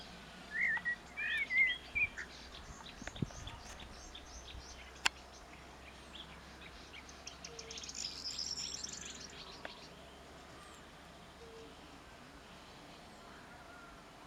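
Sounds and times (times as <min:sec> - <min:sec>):
other birds chirping: 0:00.0 - 0:11.7
common blackbird warbling: 0:00.5 - 0:05.2.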